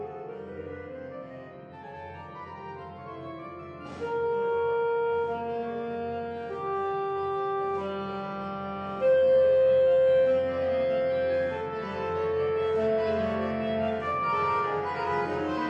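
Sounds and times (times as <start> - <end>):
saxophone march: 3.8 - 15.6.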